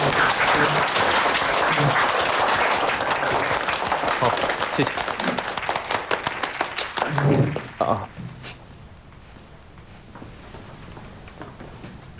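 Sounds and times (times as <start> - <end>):
warm audience applause: 0.0 - 8.1
speech: 4.2 - 5.1, 7.8 - 8.1.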